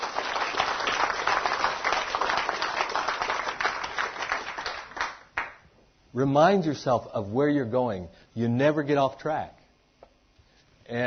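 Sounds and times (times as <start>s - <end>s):
British audience applause: 0.0s - 5.6s
speech: 6.2s - 9.6s, 10.9s - 11.0s.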